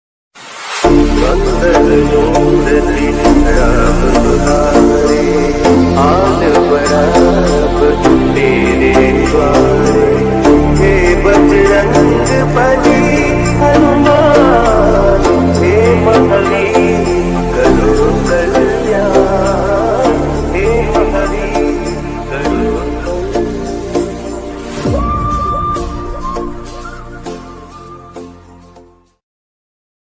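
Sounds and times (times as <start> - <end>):
devotional song ringtone: 0.8 - 29.2.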